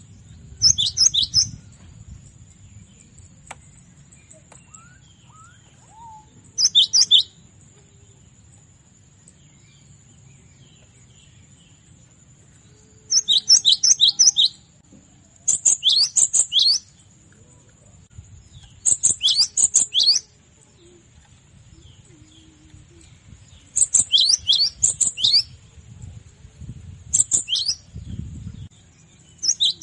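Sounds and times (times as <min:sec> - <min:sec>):
cinereous tit calling in rapid high slurred chirps: 0:00.6 - 0:01.6, 0:04.3 - 0:07.4, 0:13.1 - 0:14.6, 0:15.5 - 0:17.0, 0:18.5 - 0:21.0, 0:21.8 - 0:25.6, 0:27.2 - 0:27.9, 0:29.4 - 0:29.8.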